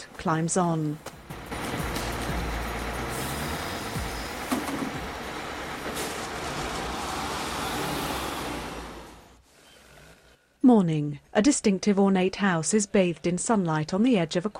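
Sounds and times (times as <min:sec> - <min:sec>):
Downtown Express city bus engine rumble pulling up at a stop: 0:00.0 - 0:10.2
speech: 0:00.2 - 0:01.1, 0:10.7 - 0:14.5.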